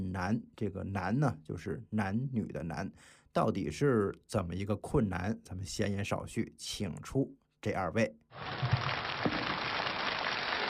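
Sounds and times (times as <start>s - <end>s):
speech: 0.1s - 9.0s
crowd applauding: 8.4s - 10.6s.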